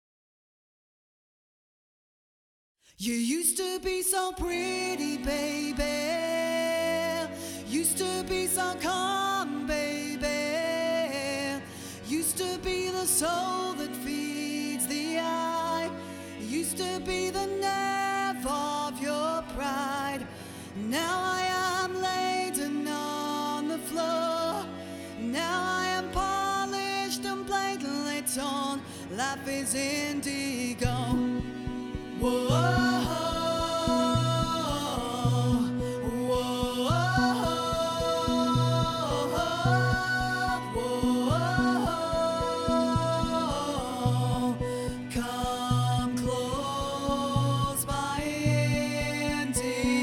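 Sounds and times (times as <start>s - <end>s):
chill vocal music tuned to 432 Hz: 3.0s - 50.0s.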